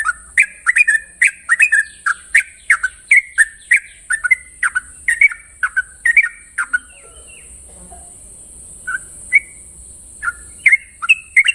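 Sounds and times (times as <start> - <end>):
Yellow-vented Bulbul chattering long-trill song: 0.0 - 11.5.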